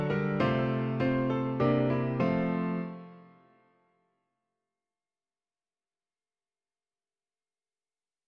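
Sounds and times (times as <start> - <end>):
piano piece: 0.0 - 3.8.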